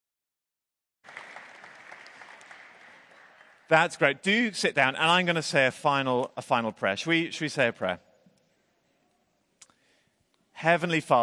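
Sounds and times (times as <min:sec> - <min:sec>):
round of applause: 0:01.0 - 0:04.0
speech: 0:03.7 - 0:08.1, 0:10.6 - 0:11.2.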